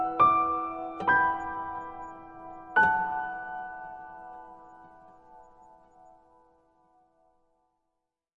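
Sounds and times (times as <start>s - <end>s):
instrumental music: 0.0s - 6.5s.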